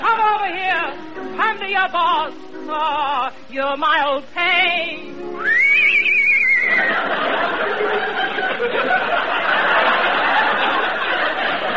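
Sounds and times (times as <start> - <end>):
speech: 1.6 - 5.2
horse whinnying: 5.5 - 6.9
laughter: 6.6 - 11.7.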